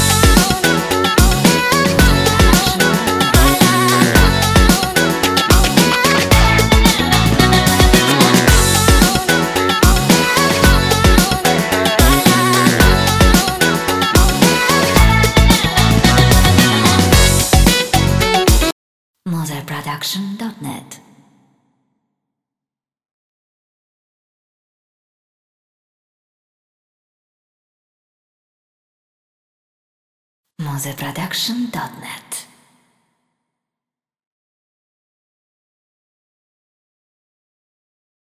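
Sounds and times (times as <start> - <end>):
energetic hip-hop and funk background music: 0.0 - 18.7.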